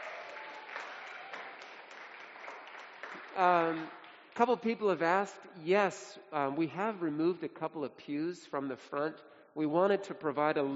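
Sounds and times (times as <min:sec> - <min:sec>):
audience applause: 0:00.0 - 0:04.3
speech: 0:03.4 - 0:10.7.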